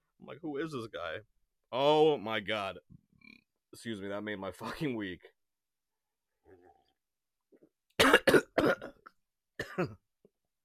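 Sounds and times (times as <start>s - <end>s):
speech: 0.2s - 3.0s, 3.7s - 5.4s, 9.8s - 10.0s
person coughing and spluttering choking on tea up the nose: 8.0s - 10.1s.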